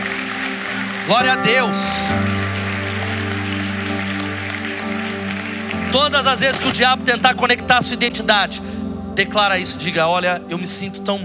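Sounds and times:
audience applauding: 0:00.0 - 0:07.2
sustained low keyboard chord: 0:00.0 - 0:11.2
speech: 0:01.1 - 0:02.4, 0:05.9 - 0:11.2.

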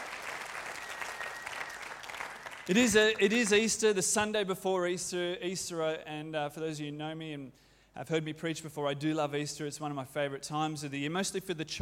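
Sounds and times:
audience applause: 0:00.0 - 0:03.4
speech: 0:02.7 - 0:11.8.

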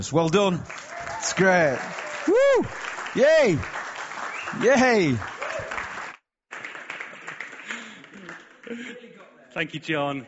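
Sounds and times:
speech: 0:00.0 - 0:03.8, 0:04.5 - 0:05.3, 0:09.6 - 0:10.2
voices cheering: 0:00.7 - 0:06.1
audience applause: 0:00.7 - 0:08.9
laughter: 0:06.9 - 0:09.2.

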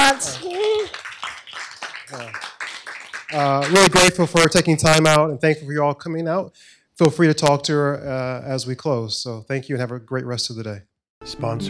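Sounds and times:
audience applause: 0:00.0 - 0:04.1
speech: 0:03.3 - 0:11.6.

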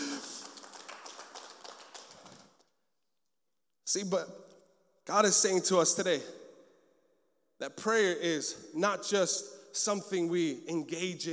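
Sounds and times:
audience clapping: 0:00.0 - 0:02.7
speech: 0:03.9 - 0:04.5, 0:05.1 - 0:06.4, 0:07.6 - 0:11.3.

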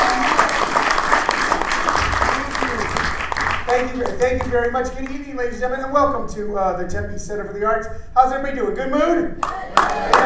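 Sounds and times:
audience applause at the Tempe Center for the Arts: 0:00.0 - 0:04.9, 0:09.4 - 0:10.2
speech: 0:03.7 - 0:10.2.

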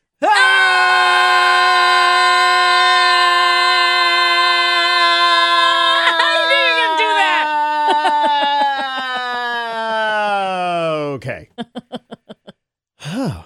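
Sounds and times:
people screaming together inside a car: 0:00.2 - 0:11.0
laughter: 0:05.6 - 0:12.5
breathless gasps: 0:13.0 - 0:13.4.

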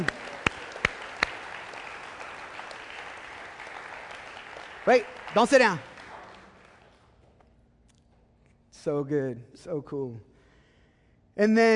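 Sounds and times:
audience applauding: 0:00.0 - 0:07.2
sharp loud claps: 0:00.0 - 0:07.4
speech: 0:04.9 - 0:05.9, 0:08.8 - 0:10.3, 0:11.4 - 0:11.7.

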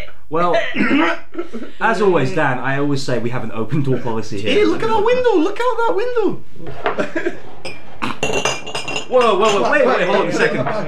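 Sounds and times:
speech: 0:00.3 - 0:08.5, 0:09.1 - 0:10.8
laughter: 0:00.6 - 0:01.8, 0:06.8 - 0:07.5, 0:09.6 - 0:10.8
fine cutlery clinking and chinking together: 0:06.8 - 0:09.9.

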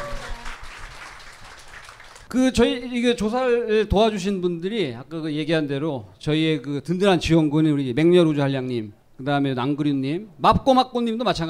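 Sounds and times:
audience applause: 0:00.0 - 0:02.3
speech: 0:02.3 - 0:11.4.

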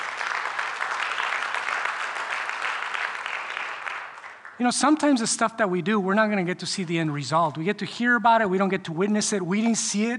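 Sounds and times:
crowd clapping: 0:00.0 - 0:05.5
speech: 0:04.6 - 0:10.1.

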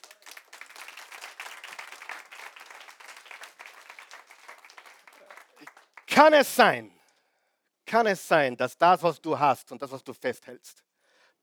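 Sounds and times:
audience applauding: 0:00.0 - 0:06.4
speech: 0:06.2 - 0:06.9, 0:07.9 - 0:10.8.

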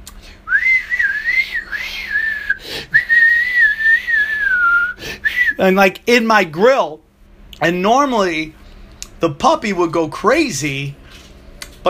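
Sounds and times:
person whistling in imitation of aggressive flute playing: 0:00.5 - 0:05.6
speech: 0:05.6 - 0:07.0, 0:07.6 - 0:08.6, 0:09.2 - 0:11.0.

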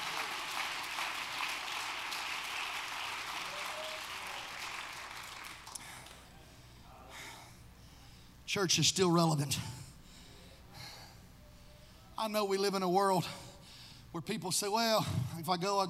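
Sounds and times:
audience clapping hands: 0:00.0 - 0:06.2
speech: 0:08.5 - 0:09.8, 0:12.2 - 0:13.4, 0:14.1 - 0:15.8.

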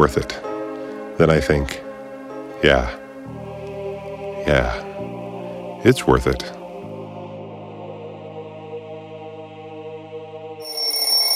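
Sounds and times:
speech: 0:00.0 - 0:00.5, 0:01.2 - 0:01.8, 0:02.6 - 0:03.0, 0:04.4 - 0:04.9, 0:05.8 - 0:06.6
alarm ringing: 0:10.6 - 0:11.3.

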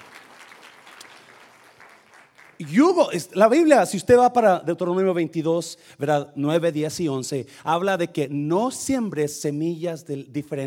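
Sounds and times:
audience applause: 0:00.0 - 0:02.8
speech: 0:02.6 - 0:10.6.

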